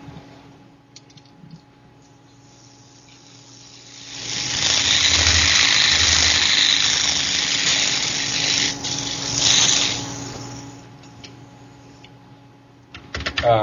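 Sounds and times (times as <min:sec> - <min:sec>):
thrown yo-yo spinning with a high whirring squeal: 0:02.5 - 0:10.8.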